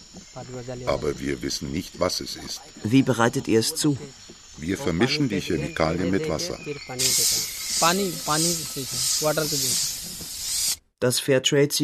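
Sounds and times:
speech: 0.4s - 10.2s, 11.0s - 11.8s
pesticide sprayer hissing in bursts: 6.4s - 10.8s.

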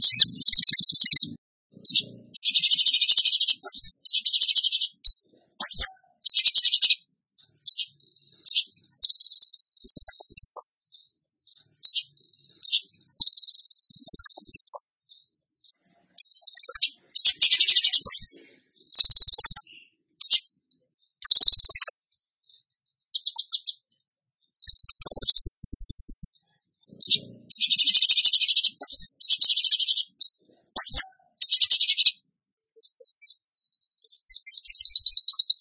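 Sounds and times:
songbird song with buzzy trills and whistles: 0.0s - 35.5s.

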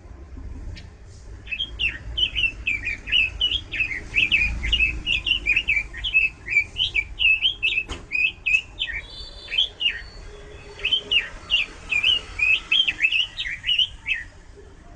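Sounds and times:
bird chirping: 0.7s - 14.7s.

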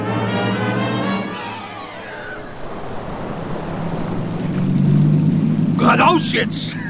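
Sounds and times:
small motorboat engine humming: 0.2s - 6.8s
water rushing and splashing: 1.6s - 6.8s
speech: 6.2s - 6.8s.

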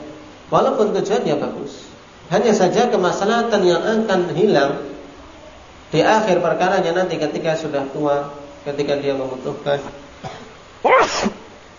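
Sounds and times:
speech: 0.5s - 4.9s, 5.9s - 11.4s
sneeze: 10.2s - 11.5s.

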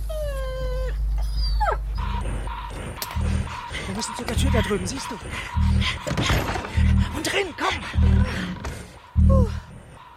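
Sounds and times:
dogs eager for offered food whimpering: 0.0s - 8.6s
constant low rumble: 0.0s - 10.1s
speech: 4.0s - 9.6s.

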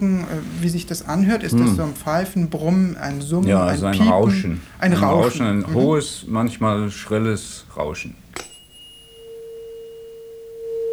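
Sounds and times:
speech: 0.0s - 8.2s
laughter: 0.0s - 8.4s
tuning fork tone during hearing test: 8.4s - 10.9s.

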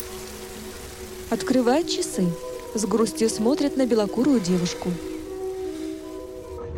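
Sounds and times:
heavy rain pouring on a railway platform in the evening: 0.0s - 6.6s
speech: 1.3s - 5.1s.

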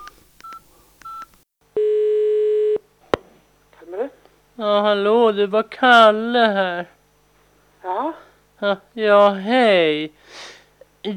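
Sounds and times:
mobile phone call tone: 1.8s - 2.8s
speech: 4.6s - 7.0s, 7.8s - 11.1s.

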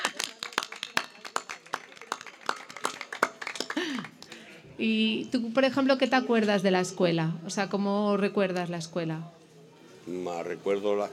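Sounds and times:
small group applauding a teacher: 0.0s - 4.6s
speech: 4.8s - 9.4s, 10.1s - 11.1s.

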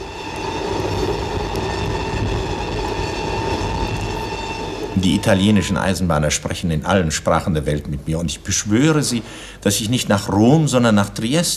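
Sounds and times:
faint high metallic whine of train: 0.0s - 9.3s
express train bound for Rome rolling along the rails: 0.0s - 10.3s
speech: 5.0s - 11.5s.

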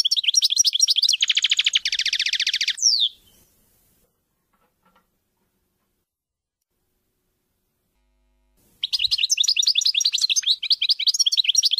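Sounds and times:
European goldfinch trilling: 0.0s - 3.3s, 8.8s - 11.7s.

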